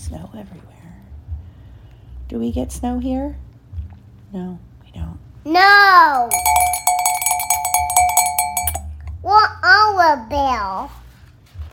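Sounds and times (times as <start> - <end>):
speech: 0.1 - 1.1, 2.3 - 3.4, 4.3 - 6.8, 9.2 - 11.0
bell ringing: 6.2 - 8.9.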